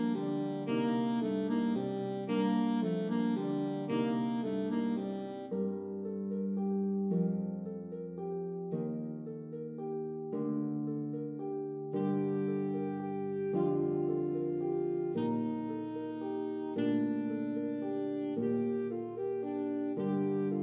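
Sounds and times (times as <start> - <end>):
E flat saxophone: 0.0 - 5.6, 12.0 - 20.6
pedal harp: 0.0 - 20.6.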